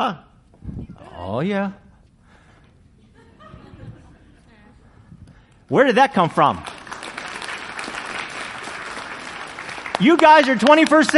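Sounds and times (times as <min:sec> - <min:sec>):
speech: 0:00.0 - 0:00.3, 0:01.2 - 0:01.8, 0:05.7 - 0:06.7, 0:10.0 - 0:11.1
laughter: 0:02.9 - 0:05.0
audience applauding: 0:06.3 - 0:11.1.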